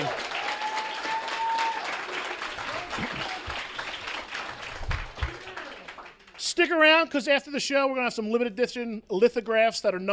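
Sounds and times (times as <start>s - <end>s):
audience clapping for a level check: 0.0s - 6.6s
speech: 6.6s - 10.1s.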